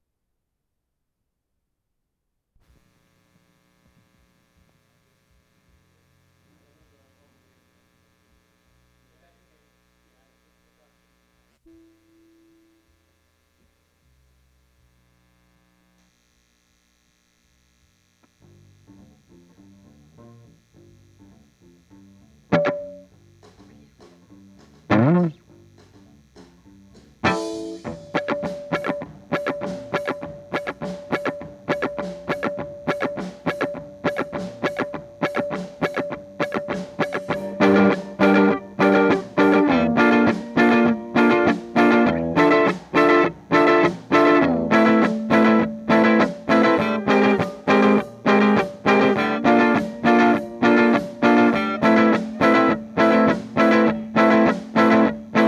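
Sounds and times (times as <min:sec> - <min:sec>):
guitar: 0:18.2 - 0:55.4.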